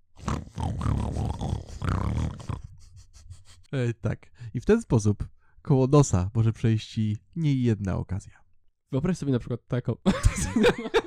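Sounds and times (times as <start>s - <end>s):
pigs grunting and snorting: 0.2s - 2.7s
speech: 3.7s - 11.0s
laughter: 10.1s - 11.0s.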